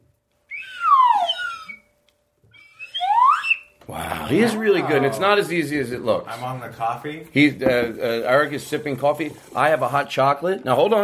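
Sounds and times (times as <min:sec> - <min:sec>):
slide whistle: 0:00.4 - 0:03.8
speech: 0:03.9 - 0:11.0.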